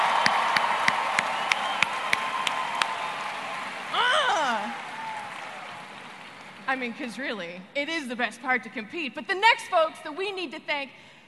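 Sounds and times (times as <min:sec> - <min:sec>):
crowd cheering: 0:00.0 - 0:06.7
rhythmic clapping: 0:00.0 - 0:06.8
person shouting whoo: 0:04.0 - 0:05.3
speech: 0:06.8 - 0:11.2.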